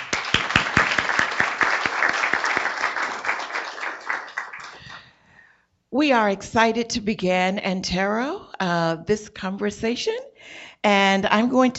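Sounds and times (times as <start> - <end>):
audience applause: 0.0 - 5.0
speech: 5.9 - 11.7.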